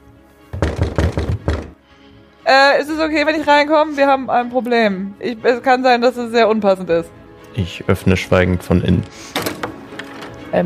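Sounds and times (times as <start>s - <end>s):
knocking on a door: 0.5s - 1.8s
speech: 2.5s - 9.4s.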